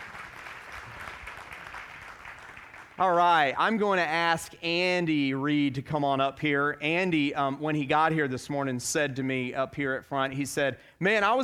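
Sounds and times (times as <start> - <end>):
audience applauding: 0.0 - 3.5
speech: 3.0 - 11.4.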